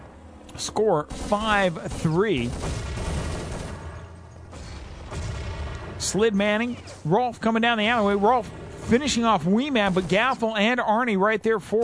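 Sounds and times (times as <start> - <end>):
speech: 0.6 - 3.0, 6.0 - 11.8
gunfire in a tactical shooter video game: 1.1 - 6.9, 7.6 - 10.6.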